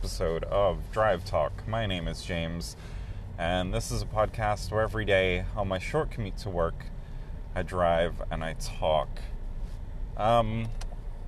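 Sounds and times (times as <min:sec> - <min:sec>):
speech: 0:00.0 - 0:07.0, 0:07.6 - 0:09.3, 0:10.2 - 0:10.8
car heater blowing hot air: 0:00.0 - 0:11.2.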